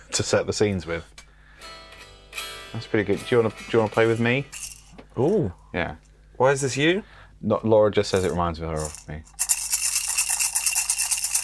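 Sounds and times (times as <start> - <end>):
speech: 0.1 - 1.2, 2.7 - 4.6, 5.2 - 9.4
jingly squeaky toy being shaken: 3.9 - 4.9, 8.2 - 11.4.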